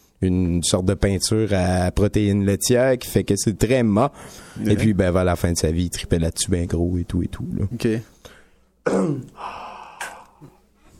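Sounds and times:
speech: 0:00.2 - 0:09.6
breathy exhale after taking a puff: 0:09.4 - 0:10.6.

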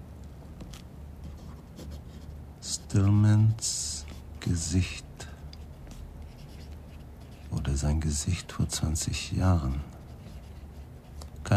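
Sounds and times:
speech: 0:02.7 - 0:05.1, 0:07.8 - 0:09.9
pen writing on blank notebook pages: 0:05.9 - 0:07.5, 0:10.0 - 0:11.2.

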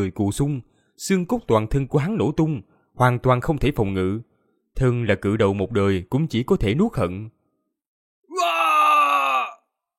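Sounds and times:
speech: 0:00.0 - 0:07.4
man screaming in pain: 0:08.3 - 0:09.7.

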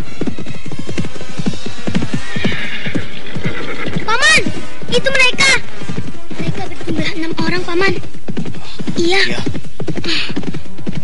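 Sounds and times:
galloping hoofbeats of riders' horses: 0:00.0 - 0:11.0
high wavering horse neigh: 0:01.8 - 0:05.3.

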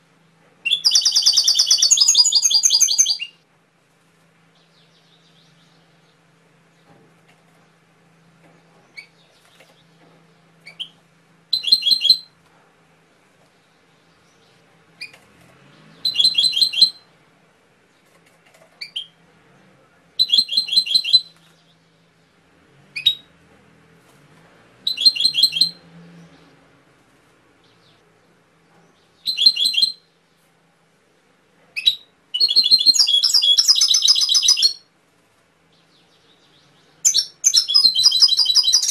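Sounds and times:
faint low hum: 0:00.0 - 0:38.8
canary song: 0:00.6 - 0:03.4, 0:08.3 - 0:12.4, 0:13.6 - 0:17.2, 0:18.8 - 0:19.2, 0:20.2 - 0:23.3, 0:24.8 - 0:26.6, 0:28.8 - 0:30.4, 0:31.8 - 0:34.9, 0:35.7 - 0:38.8.

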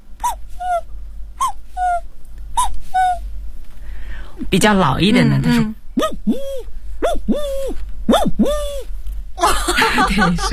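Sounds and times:
voice imitating a young cuckoo's call: 0:00.2 - 0:03.2, 0:06.0 - 0:08.9
speech: 0:04.5 - 0:06.5, 0:09.8 - 0:10.5
laughter: 0:09.4 - 0:10.5.

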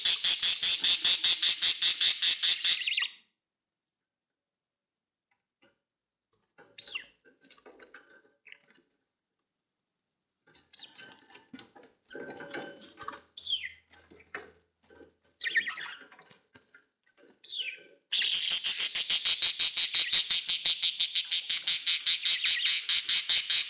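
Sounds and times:
budgerigar squawking and chatter: 0:00.1 - 0:03.1, 0:17.5 - 0:23.6.

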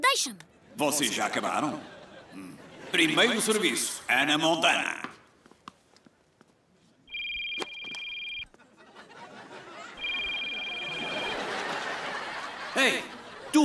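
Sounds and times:
speech: 0:00.1 - 0:05.1, 0:12.8 - 0:13.6
laughter: 0:00.6 - 0:04.0, 0:08.5 - 0:13.6
mobile phone ringing: 0:07.1 - 0:08.6, 0:10.0 - 0:12.2.

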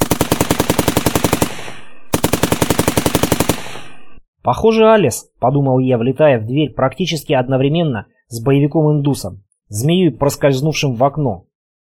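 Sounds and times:
submachine gun bursts: 0:00.0 - 0:04.0
speech: 0:04.4 - 0:11.5.

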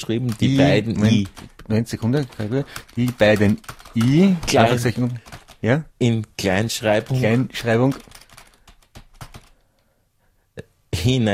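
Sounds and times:
typing on a computer keyboard: 0:00.0 - 0:05.6, 0:06.9 - 0:09.6
speech: 0:00.0 - 0:08.2, 0:11.0 - 0:11.3.

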